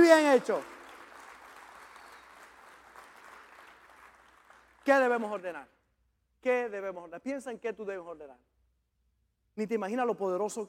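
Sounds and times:
speech: 0.0 - 0.8, 4.8 - 5.8, 6.4 - 8.5, 9.6 - 10.6
audience applause: 0.0 - 4.8.

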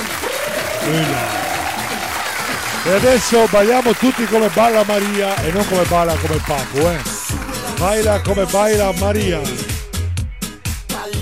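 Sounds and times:
applause: 0.0 - 7.9
speech: 0.8 - 1.4, 2.8 - 7.1, 7.8 - 9.6.

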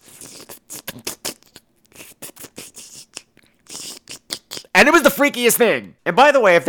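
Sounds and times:
voice imitating a tiny slurping noise: 0.0 - 4.8
speech: 4.8 - 6.6.

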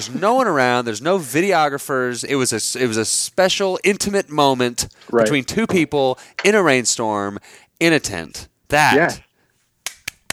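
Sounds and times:
speech: 0.0 - 9.2
hand clapping: 9.8 - 10.3.

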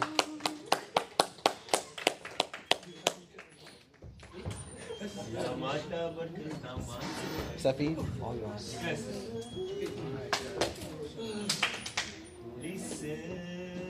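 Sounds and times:
round of applause: 0.0 - 3.9
speech: 5.4 - 11.8, 13.0 - 13.5.

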